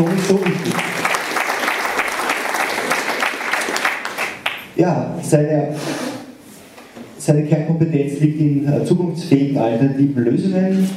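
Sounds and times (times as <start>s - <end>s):
speech: 0.0s - 1.0s, 4.8s - 6.1s, 7.2s - 10.9s
applause: 0.0s - 4.7s.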